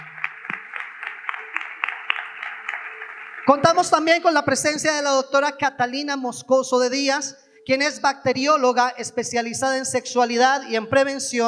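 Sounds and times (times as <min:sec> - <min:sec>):
audience applause: 0:00.0 - 0:04.1
speech: 0:03.5 - 0:11.4.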